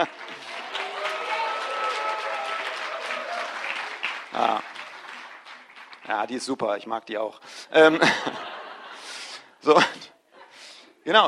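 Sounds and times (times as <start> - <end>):
audience applause: 0.0 - 6.6
speech: 4.4 - 4.7, 6.1 - 8.4, 9.6 - 10.0, 11.1 - 11.2
laughter: 7.8 - 10.6.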